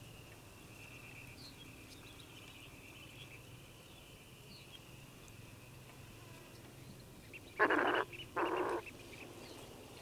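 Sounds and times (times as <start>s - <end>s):
Steller's eider nasal call: 7.6s - 8.8s.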